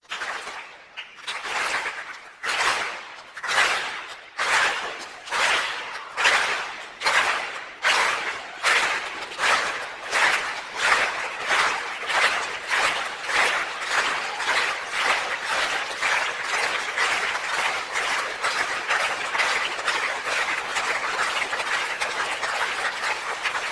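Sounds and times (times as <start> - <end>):
applause: 0.0 - 23.7.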